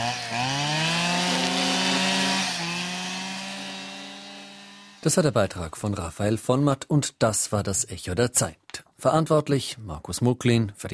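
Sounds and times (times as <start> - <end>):
grass trimmer mowing: 0.0 - 5.2
speech: 5.0 - 10.9.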